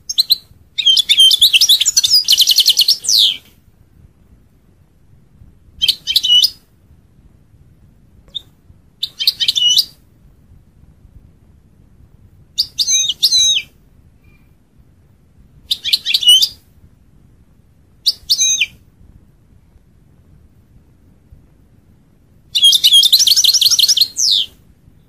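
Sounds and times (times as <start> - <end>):
European goldfinch chirps: 0.1 - 3.4, 5.8 - 6.6, 9.0 - 9.9, 15.7 - 16.6, 18.0 - 18.7, 22.5 - 24.6.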